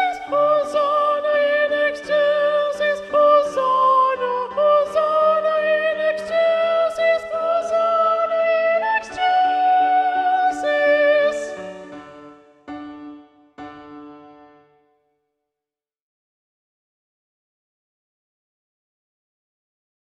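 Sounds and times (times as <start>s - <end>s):
soprano singing: 0.0s - 12.6s.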